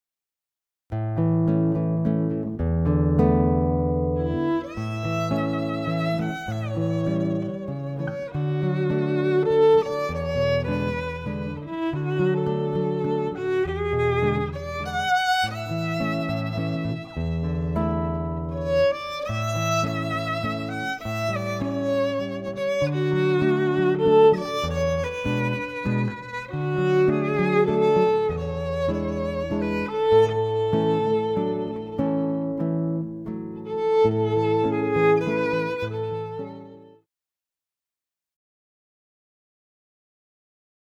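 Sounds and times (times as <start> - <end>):
guitar: 0.9 - 37.0
violin: 3.9 - 37.0.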